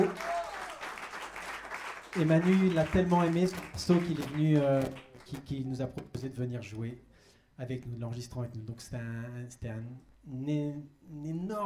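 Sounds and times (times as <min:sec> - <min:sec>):
audience applause: 0:00.0 - 0:05.0
speech: 0:02.1 - 0:11.6.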